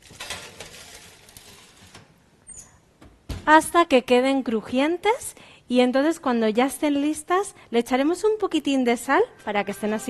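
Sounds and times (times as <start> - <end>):
baking tray being put into an oven: 0.0 - 2.1
speech: 3.5 - 10.0.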